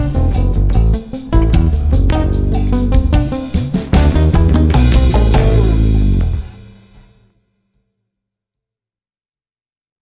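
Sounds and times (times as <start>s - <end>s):
rubber bass: 0.0s - 6.9s.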